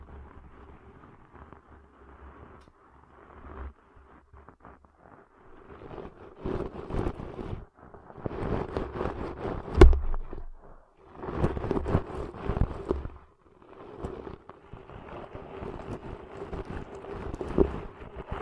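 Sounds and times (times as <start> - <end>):
ear cleaning muffled rubbing and scratching: 4.5 - 18.4
low steady hum: 9.6 - 11.0
sharp click: 9.8 - 10.8.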